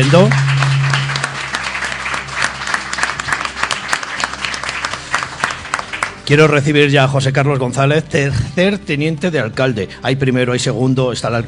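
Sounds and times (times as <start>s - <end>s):
audience applause: 0.0s - 6.3s
speech: 0.1s - 0.4s, 6.3s - 11.4s.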